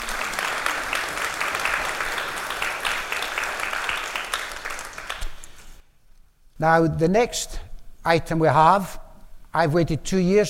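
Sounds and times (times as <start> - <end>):
audience applause: 0.0 - 5.8
speech: 6.6 - 10.4.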